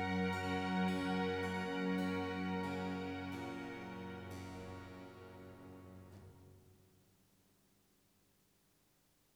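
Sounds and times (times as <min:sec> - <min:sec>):
concerto for trumpet, two oboes, strings and continuo in D major: 0:00.0 - 0:06.3.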